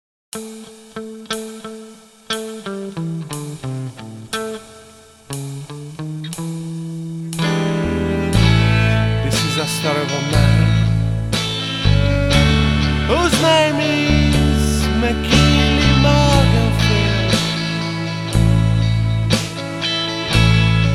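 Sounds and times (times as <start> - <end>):
blues music: 0.4 - 20.9.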